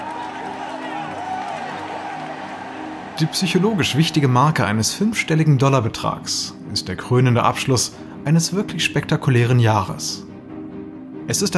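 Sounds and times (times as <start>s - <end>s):
office workers clapping: 0.0s - 4.8s
speech: 3.2s - 10.3s, 11.3s - 11.5s.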